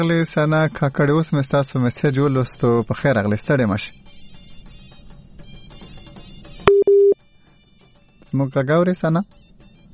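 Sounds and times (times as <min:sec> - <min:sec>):
speech: 0:00.0 - 0:04.1, 0:08.4 - 0:09.4
telephone busy signal after a call is cut off: 0:06.7 - 0:07.2.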